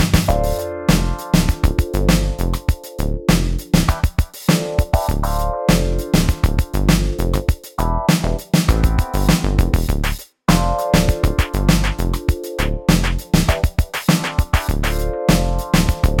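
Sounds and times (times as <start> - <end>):
80s electro music: 0.1 - 16.1.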